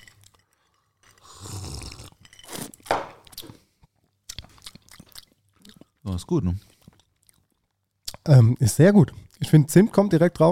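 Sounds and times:
ice cubes clinking in a drink: 0.0 - 3.0
speech: 6.2 - 6.7, 8.2 - 10.5.

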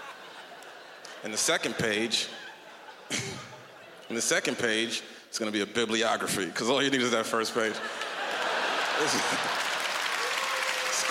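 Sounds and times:
laughter: 0.0 - 4.9, 6.6 - 11.0
speech: 1.2 - 2.4, 3.1 - 3.5, 4.1 - 8.0, 9.0 - 9.6
audience applause: 7.8 - 11.0.

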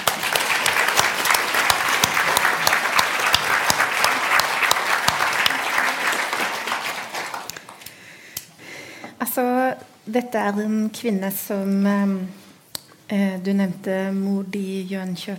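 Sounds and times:
audience applause: 0.0 - 8.0
speech: 9.4 - 12.4, 13.1 - 15.3.

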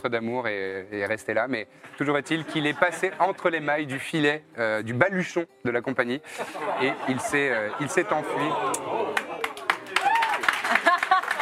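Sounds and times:
speech: 0.0 - 9.2
voices talking and laughing: 6.4 - 9.6
audience clapping: 8.7 - 11.4.

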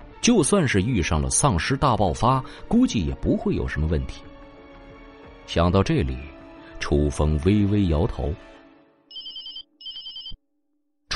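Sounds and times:
speech: 0.2 - 4.3, 5.5 - 8.5
phone ringing with electronic trills: 9.1 - 10.4.

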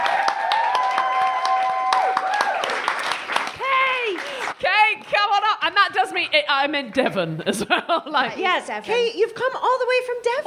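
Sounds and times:
live show audience whoops: 0.0 - 3.0
live show audience clapping: 0.0 - 5.1
speech: 6.2 - 10.4.

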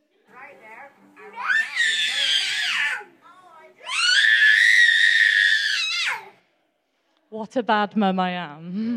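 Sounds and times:
two-year-old boy screaming in a tantrum: 1.3 - 3.1, 3.8 - 6.4
speech: 7.4 - 8.9.

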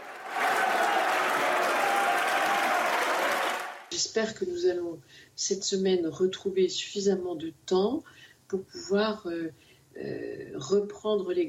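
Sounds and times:
applause in parliament chamber: 0.0 - 3.9
speech: 4.0 - 11.4.

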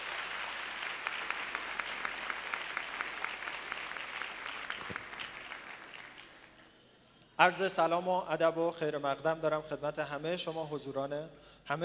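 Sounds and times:
seminar audience applause at a calm-living seminar: 0.0 - 6.6
speech: 7.4 - 11.8.

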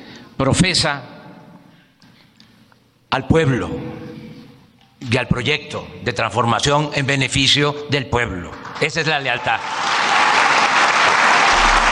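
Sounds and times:
speech: 0.4 - 1.1, 3.1 - 4.0, 5.0 - 10.0
applause at political event: 8.6 - 11.9.

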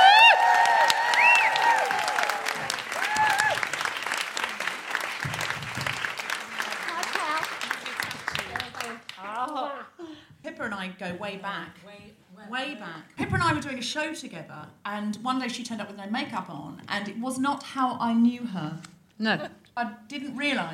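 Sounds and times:
audience whoops: 0.0 - 3.8
comedy show audience applauding and cheering a guest comedian: 0.0 - 9.5
speech: 10.9 - 11.9, 12.5 - 20.7.

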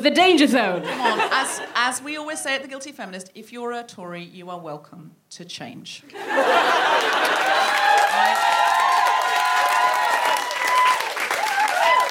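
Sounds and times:
speech: 0.0 - 8.6
laughter: 0.8 - 1.9, 6.1 - 8.8
audience clapping: 6.7 - 12.0.

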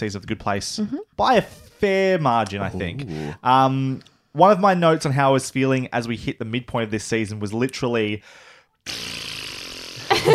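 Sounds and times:
speech: 0.0 - 9.3
person vocally imitating air escaping a balloon: 2.5 - 3.5, 8.9 - 10.3.

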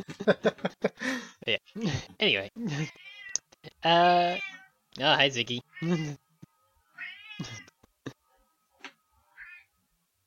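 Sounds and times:
speech: 0.0 - 0.7, 1.5 - 3.0, 3.8 - 4.4, 5.0 - 6.2
cat meowing: 2.9 - 3.4, 4.3 - 4.7, 7.0 - 7.7, 9.3 - 9.7.

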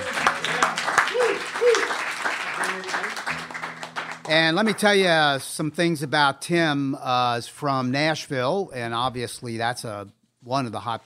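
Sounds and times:
cheers and voices calling out: 0.0 - 2.0
audience applause for a guest: 0.0 - 5.0
speech: 4.3 - 11.0.

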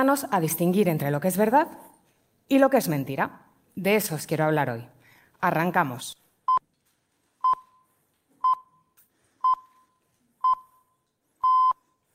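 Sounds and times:
speech: 0.0 - 1.9, 2.5 - 6.2
radio news bulletin time signal beeps: 7.4 - 11.8.

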